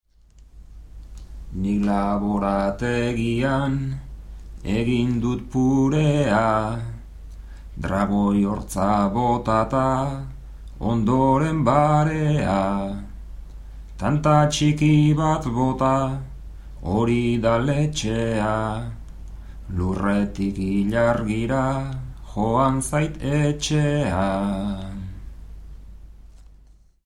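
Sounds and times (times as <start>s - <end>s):
bertsos improvised verse singing: 1.5s - 7.1s, 7.7s - 13.2s, 14.0s - 25.3s.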